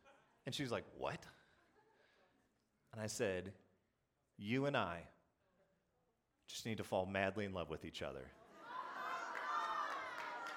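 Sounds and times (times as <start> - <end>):
speech: 0.5 - 1.4, 2.9 - 3.6, 4.4 - 5.2, 6.5 - 8.4
live audience applauding and cheering: 8.6 - 10.5.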